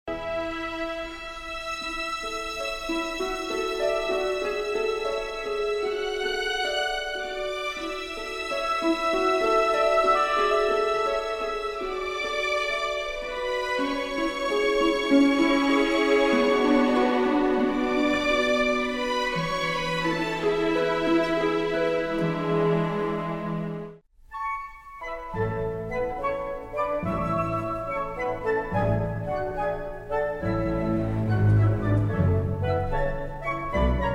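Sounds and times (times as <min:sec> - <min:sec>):
music: 0:00.0 - 0:34.1.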